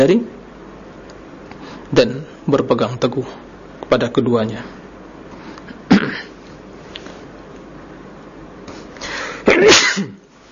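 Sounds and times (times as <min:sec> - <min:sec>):
speech: 0:00.0 - 0:00.4, 0:01.9 - 0:04.8
sneeze: 0:09.4 - 0:10.2.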